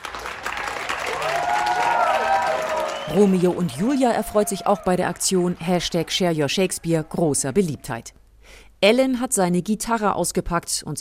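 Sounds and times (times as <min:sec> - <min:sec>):
street crowd clapping: 0:00.0 - 0:07.0
whoops and cheers: 0:00.6 - 0:05.2
speech: 0:03.1 - 0:11.0.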